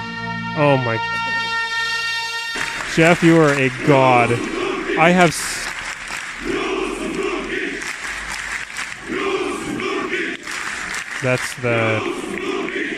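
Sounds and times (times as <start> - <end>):
speech: 0.6 - 1.4, 3.0 - 5.6, 11.2 - 12.5
soccer fans cheering: 2.5 - 12.9.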